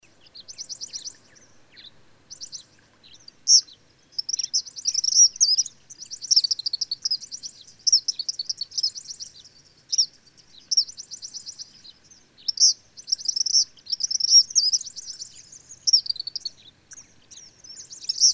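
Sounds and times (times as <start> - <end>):
bird song with fast trills and sharp whistled accents: 0.0 - 18.3.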